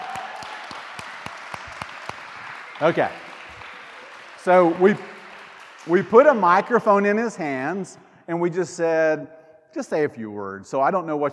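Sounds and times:
crowd applauding: 0.0s - 7.3s
speech: 2.8s - 3.2s, 4.4s - 5.1s, 5.8s - 11.3s.

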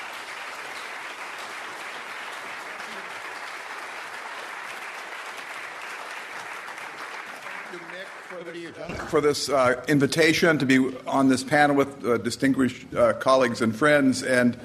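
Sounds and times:
audience applause welcoming a panel at an academic talk: 0.0s - 9.6s
speech: 7.7s - 14.6s.

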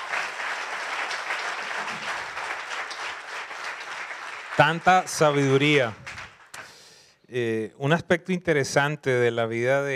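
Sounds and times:
audience applause: 0.0s - 6.7s
speech: 4.6s - 6.0s, 7.3s - 9.9s.

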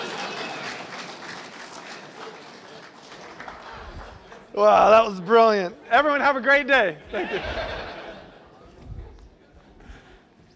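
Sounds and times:
round of applause: 0.0s - 5.2s
speech: 4.6s - 7.7s
laughter: 7.0s - 9.2s.

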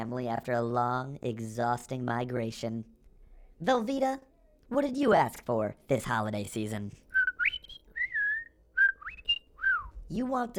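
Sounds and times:
speech: 0.0s - 3.0s, 3.6s - 7.0s, 10.1s - 10.5s
person whistling imitating finch song: 7.1s - 10.0s.

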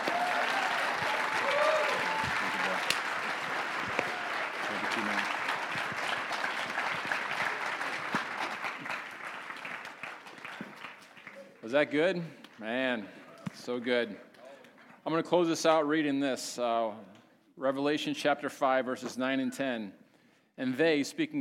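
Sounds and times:
audience clapping hands: 0.0s - 11.7s
speech: 11.7s - 14.3s, 15.1s - 20.0s, 20.6s - 21.3s.

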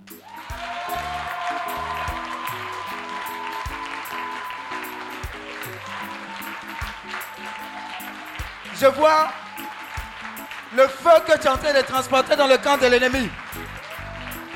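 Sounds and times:
crowd clapping steadily and loudly: 0.0s - 14.5s
sustained keyboard chords: 0.0s - 14.5s
speech: 8.8s - 9.4s, 10.7s - 13.4s
deep bass line: 13.1s - 14.4s.

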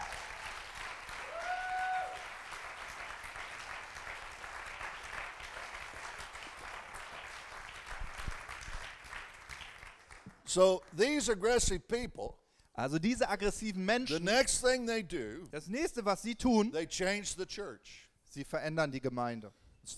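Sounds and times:
audience applauding: 0.0s - 10.4s
speech: 10.5s - 19.9s.

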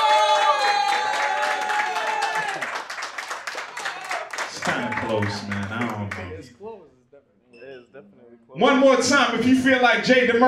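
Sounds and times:
live crowd cheering and clapping: 0.0s - 6.4s
speech: 5.1s - 6.3s, 8.0s - 10.4s.

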